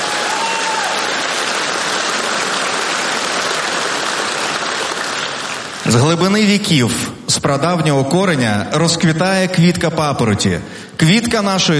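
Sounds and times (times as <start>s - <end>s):
audience applause: 0.0s - 6.1s
speech: 5.8s - 11.7s.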